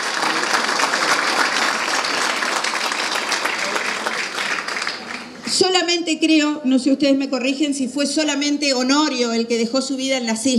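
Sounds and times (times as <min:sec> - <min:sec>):
audience applause: 0:00.0 - 0:05.4
speech: 0:05.7 - 0:10.5.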